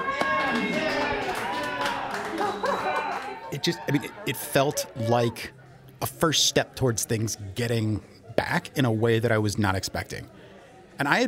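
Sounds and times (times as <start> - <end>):
restaurant staff applauding: 0.0 - 4.1
busy overlapping chatter and voices: 0.0 - 11.2
laughter: 1.9 - 5.5
speech: 3.5 - 10.4, 11.0 - 11.2.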